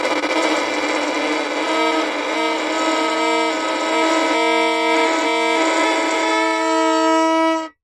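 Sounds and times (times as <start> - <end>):
violin bowed scrape for horror sound design: 0.2 - 7.8.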